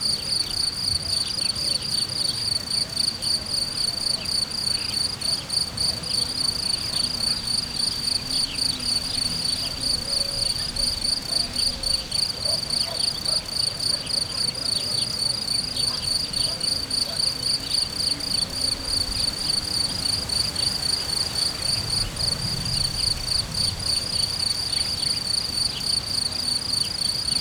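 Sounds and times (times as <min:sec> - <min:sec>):
cricket chirping in nature: 0:00.0 - 0:27.4.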